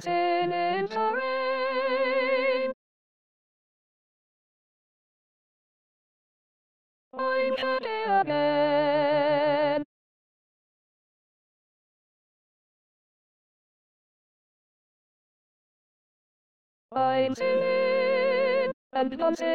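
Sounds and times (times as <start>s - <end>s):
soprano voice of SATB choir singing: 0.0s - 2.8s, 7.2s - 9.8s, 17.0s - 19.5s.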